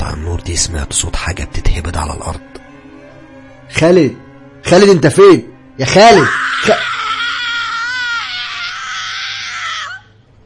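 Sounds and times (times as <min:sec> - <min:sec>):
speech: 0:00.2 - 0:02.6, 0:03.7 - 0:06.9
long high-pitched scream in a room: 0:06.2 - 0:10.1.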